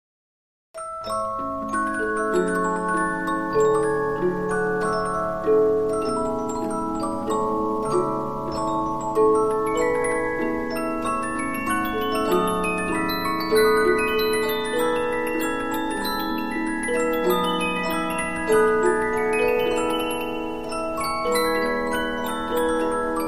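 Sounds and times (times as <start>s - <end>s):
Polyphon 15-inch disc music box playing: 0.8s - 23.2s.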